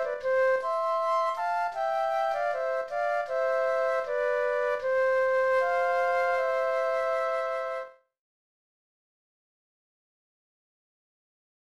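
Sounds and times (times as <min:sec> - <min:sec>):
flute duet: 0:00.0 - 0:08.1.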